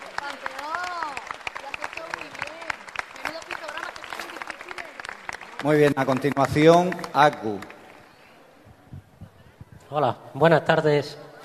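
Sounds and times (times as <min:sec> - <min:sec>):
audience applause: 0:00.0 - 0:08.2
speech: 0:05.6 - 0:07.7, 0:09.9 - 0:11.2.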